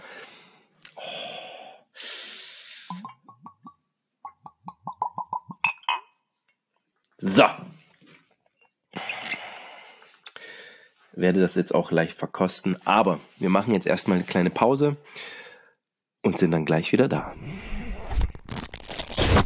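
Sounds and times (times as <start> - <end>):
bottle being opened slowly: 2.9 - 6.1
speech: 7.3 - 7.7, 11.2 - 15.3, 16.3 - 17.7
crinkling, tearing rustles: 18.1 - 19.4.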